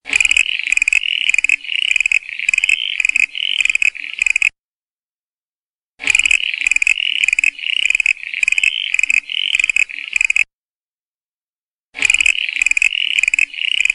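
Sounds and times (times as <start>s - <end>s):
common froglet calling: 0.0s - 4.6s, 6.0s - 10.5s, 12.0s - 13.9s.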